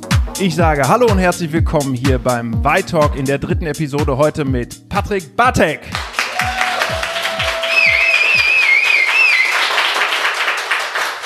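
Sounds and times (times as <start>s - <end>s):
speech: 0.4s - 6.1s
live audience applause in a pop-up store in Berlin: 6.0s - 11.2s
wavering whistle: 6.8s - 9.8s.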